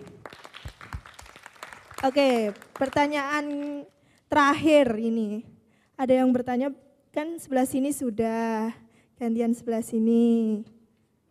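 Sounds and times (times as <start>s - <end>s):
audience applause: 0.1s - 3.6s
speech: 2.0s - 10.7s.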